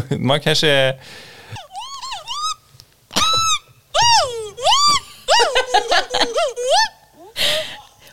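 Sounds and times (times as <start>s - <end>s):
speech: 0.1s - 1.6s
excited happy monkey vocalizing: 1.6s - 7.0s
laughter: 4.2s - 7.0s.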